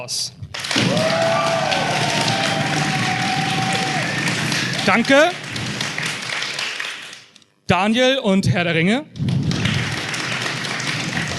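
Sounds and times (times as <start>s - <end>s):
speech: 0.0s - 1.4s, 4.8s - 5.4s, 7.7s - 9.3s
audience applause: 0.6s - 7.4s, 9.2s - 11.3s.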